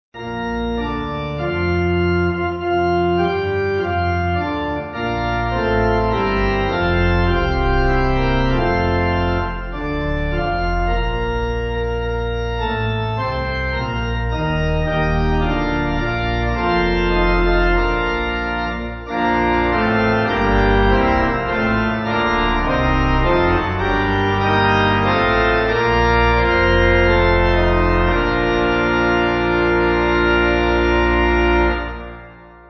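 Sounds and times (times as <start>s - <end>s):
pipe organ hymn backing: 0.2s - 32.6s.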